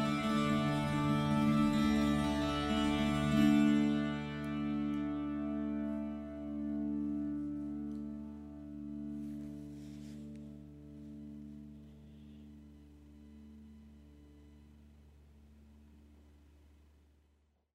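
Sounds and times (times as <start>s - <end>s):
tambura with arched top tuned a-d'-d'-d played continuously: 0.0s - 16.3s.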